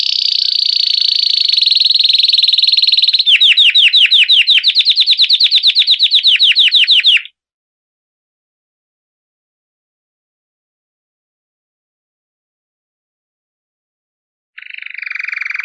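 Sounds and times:
canary song with whistled notes and rapid rolling trill: 0.0s - 7.3s, 14.6s - 15.6s.

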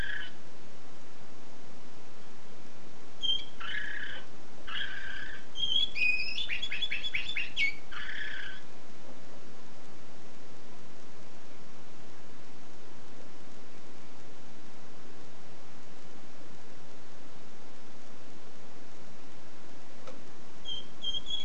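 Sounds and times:
canary singing: 0.0s - 0.4s, 3.2s - 8.7s, 20.6s - 21.4s.

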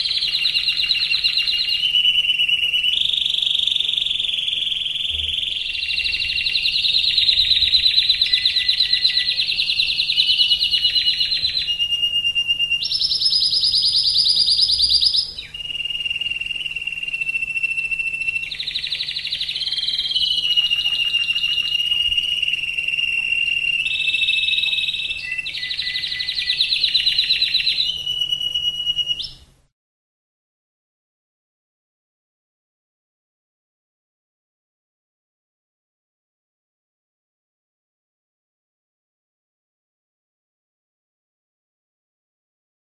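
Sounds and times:
canary singing: 0.0s - 29.5s.

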